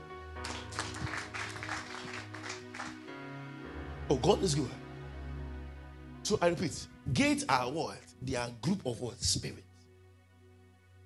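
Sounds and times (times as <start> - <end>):
audience clapping hands: 0.4 - 3.3
speech: 4.1 - 4.9, 6.3 - 9.7.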